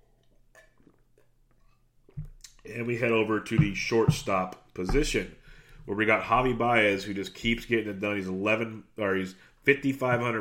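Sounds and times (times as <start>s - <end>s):
person sipping water: 0.0s - 2.7s
speech: 2.2s - 10.3s.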